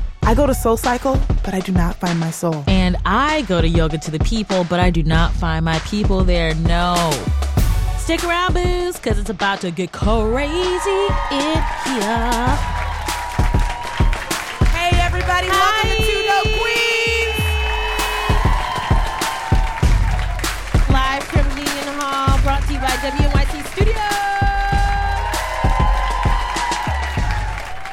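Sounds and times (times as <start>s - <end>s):
speech: 0.3s - 7.4s, 8.0s - 12.7s, 15.4s - 16.8s, 22.0s - 24.4s
live crowd clapping: 10.4s - 27.9s.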